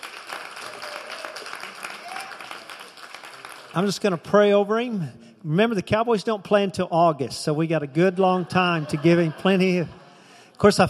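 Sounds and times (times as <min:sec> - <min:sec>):
audience clapping: 0:00.0 - 0:04.6
speech: 0:03.7 - 0:10.0, 0:10.6 - 0:10.8
laughter: 0:08.0 - 0:10.3.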